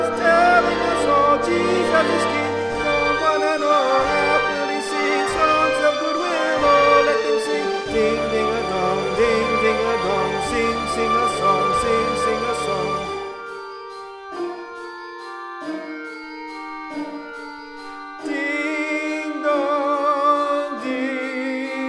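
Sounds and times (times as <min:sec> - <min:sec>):
tenor Christmas bells ringing: 0:00.0 - 0:21.8.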